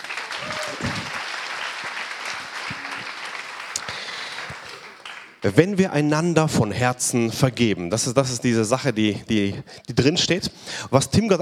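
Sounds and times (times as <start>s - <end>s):
audience applause: 0.0s - 5.5s
speech: 5.4s - 11.4s.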